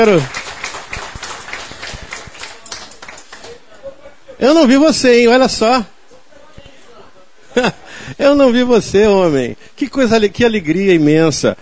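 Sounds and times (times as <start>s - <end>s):
speech: 0.0s - 0.4s, 4.4s - 5.9s, 7.6s - 11.5s
crowd applause: 0.0s - 3.6s.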